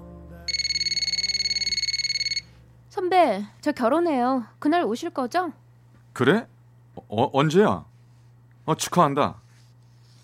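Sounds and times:
low hum: 0:00.0 - 0:10.2
telephone ringing with a rapid electronic trill: 0:00.5 - 0:02.6
speech: 0:03.0 - 0:05.6, 0:06.2 - 0:07.9, 0:08.7 - 0:09.4.

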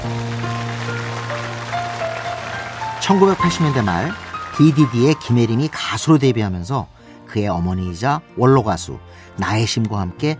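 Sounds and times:
audience applause: 0:00.0 - 0:05.8
speech: 0:03.0 - 0:10.3.

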